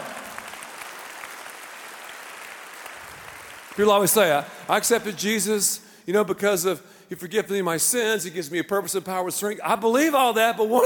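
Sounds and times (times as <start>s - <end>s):
audience applause: 0.0s - 4.9s
speech: 3.8s - 10.8s.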